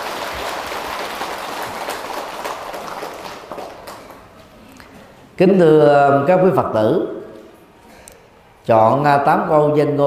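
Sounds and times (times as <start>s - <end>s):
audience applause: 0.0s - 4.3s
speech: 5.4s - 7.2s, 8.7s - 10.0s.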